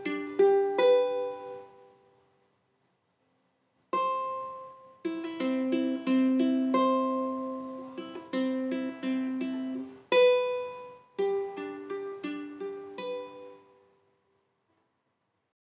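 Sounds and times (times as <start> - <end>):
instrumental lullaby: 0.0 - 2.2, 4.0 - 14.0.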